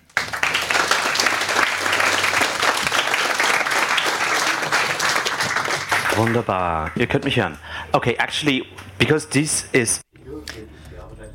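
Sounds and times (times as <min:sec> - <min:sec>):
audience applause welcoming a speaker: 0:00.0 - 0:07.4
speech: 0:06.2 - 0:10.0.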